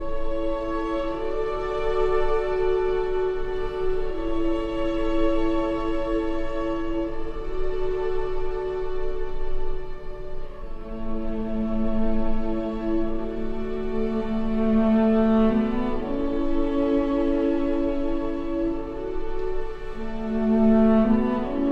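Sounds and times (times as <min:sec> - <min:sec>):
cello and strings: 0:00.0 - 0:21.7.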